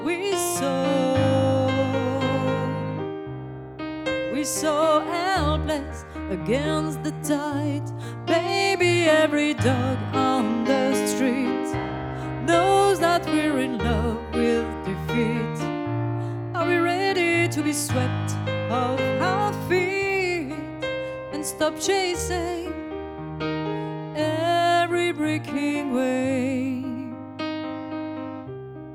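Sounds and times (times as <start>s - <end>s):
piano: 0.0s - 28.9s.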